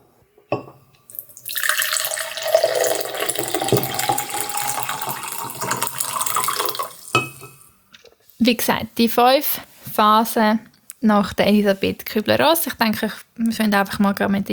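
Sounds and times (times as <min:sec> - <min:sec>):
tea pouring into a cup: 0:01.1 - 0:07.6
speech: 0:08.5 - 0:14.5.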